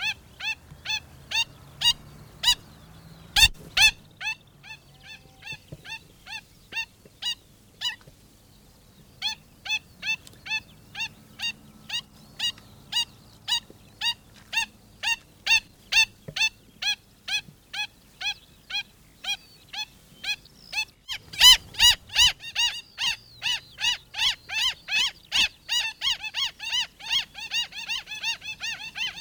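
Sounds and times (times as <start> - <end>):
black stilt singing: 0.0 - 29.1.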